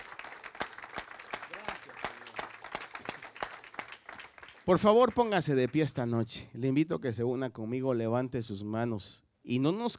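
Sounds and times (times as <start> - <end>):
audience applause: 0.0 - 5.8
speech: 4.7 - 9.9.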